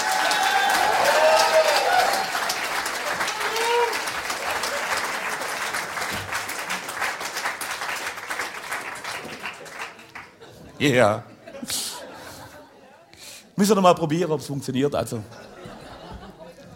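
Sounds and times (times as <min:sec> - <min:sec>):
audience applause: 0:00.0 - 0:10.5
laughter: 0:09.6 - 0:13.0, 0:15.3 - 0:16.7
speech: 0:10.8 - 0:11.8, 0:13.6 - 0:15.4.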